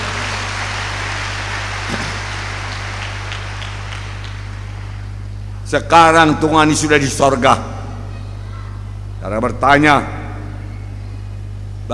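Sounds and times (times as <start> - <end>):
crowd applause: 0.0 - 5.2
constant low electrical hum: 0.0 - 11.9
speech: 5.7 - 7.7, 9.2 - 10.2.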